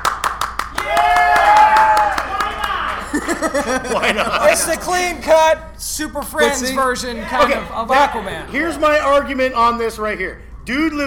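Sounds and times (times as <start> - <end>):
audience round of applause: 0.0 - 4.8
people cheering and whooping: 0.7 - 4.8
speech: 3.5 - 11.0.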